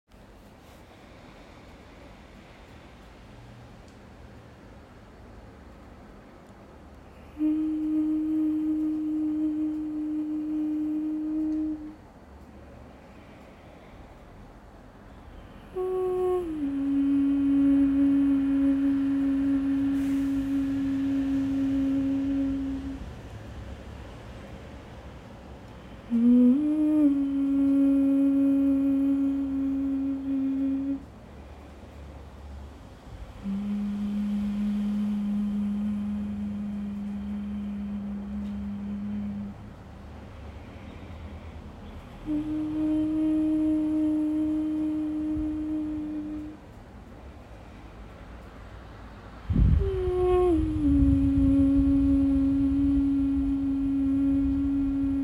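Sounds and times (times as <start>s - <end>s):
person humming: 7.1s - 12.1s, 15.3s - 23.4s, 25.9s - 31.1s, 33.4s - 39.8s, 41.8s - 46.8s, 49.4s - 55.2s.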